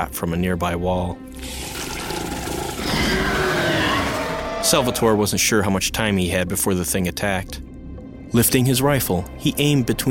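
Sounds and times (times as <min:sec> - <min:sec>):
speech: 0:00.0 - 0:01.8, 0:04.6 - 0:07.7, 0:08.3 - 0:10.0
deep growl and snarl of cave beast: 0:01.4 - 0:05.3.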